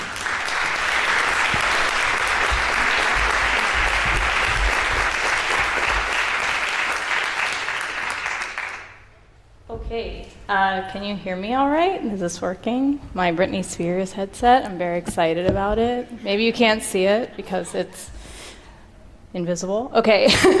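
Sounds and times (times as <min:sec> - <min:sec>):
audience applause: 0:00.0 - 0:09.0
speech: 0:09.9 - 0:18.2, 0:19.3 - 0:20.5.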